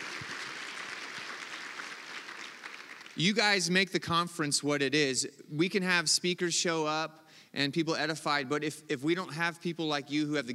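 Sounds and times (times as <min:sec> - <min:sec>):
church congregation clapping for conference volunteers: 0:00.0 - 0:03.7
speech: 0:03.2 - 0:10.5.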